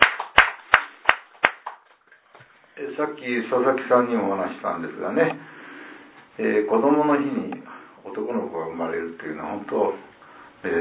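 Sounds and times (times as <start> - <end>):
handclaps celebrating a 28th birthday: 0.0 - 2.0
speech: 2.8 - 5.6, 6.4 - 10.8.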